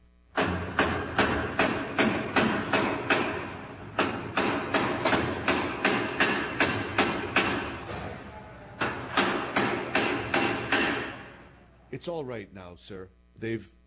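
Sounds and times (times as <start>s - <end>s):
sledgehammer hammering bolts and wing nuts: 0.4s - 8.2s, 8.8s - 11.5s
speech: 12.0s - 13.8s.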